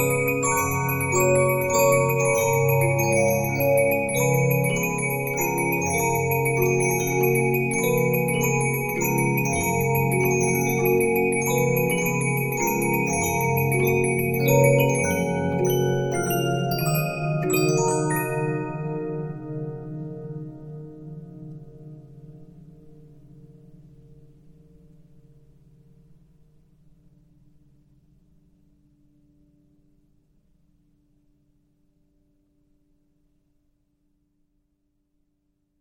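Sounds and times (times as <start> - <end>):
Regina 15-inch disc music box: 0.0 - 20.7.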